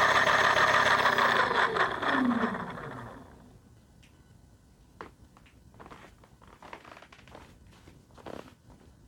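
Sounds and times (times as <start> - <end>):
fat bike motor: 0.0 - 3.4.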